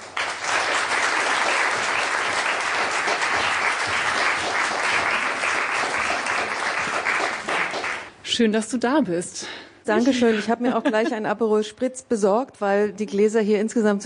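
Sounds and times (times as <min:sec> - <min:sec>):
audience applause: 0:00.0 - 0:08.1
speech: 0:08.4 - 0:14.0.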